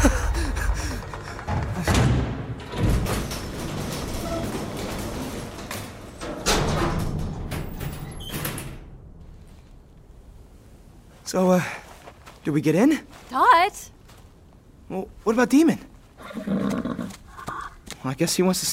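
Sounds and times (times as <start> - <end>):
elevator doors sliding open: 0.0 - 9.8
elevator arriving with rumbling mechanical noise: 0.0 - 11.1
speech: 11.3 - 11.8, 12.4 - 14.0, 14.9 - 16.7, 18.0 - 18.7.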